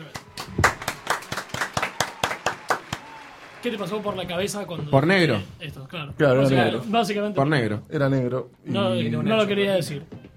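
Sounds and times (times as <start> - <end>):
applause: 0.0 - 5.3
speech: 3.6 - 10.2.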